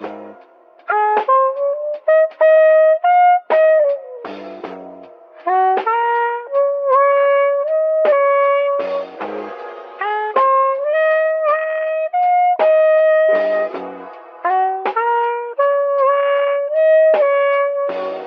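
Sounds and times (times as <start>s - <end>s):
saxophone: 0.0s - 18.2s.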